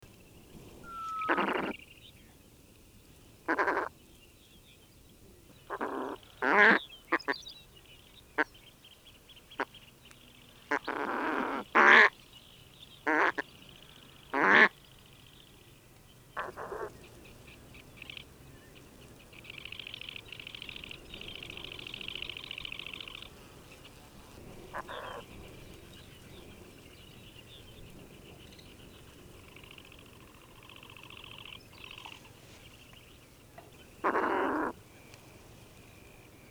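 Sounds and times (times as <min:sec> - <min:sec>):
Steller's eider nasal calls: 0:00.8 - 0:01.8, 0:03.5 - 0:03.9, 0:05.6 - 0:07.4, 0:10.6 - 0:12.2, 0:13.0 - 0:14.8, 0:16.4 - 0:26.8, 0:28.2 - 0:36.4
other birds chirring: 0:00.8 - 0:02.0, 0:09.4 - 0:36.4.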